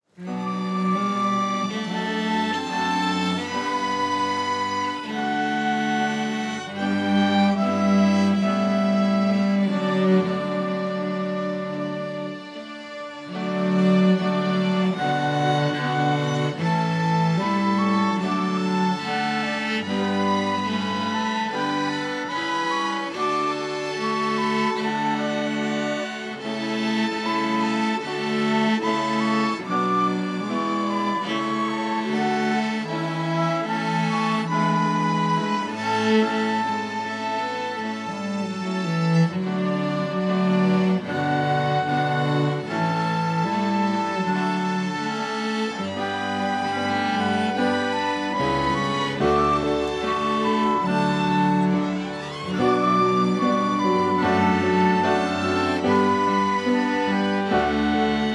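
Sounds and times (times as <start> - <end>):
orchestra playing a prelude: 0.0 - 58.3.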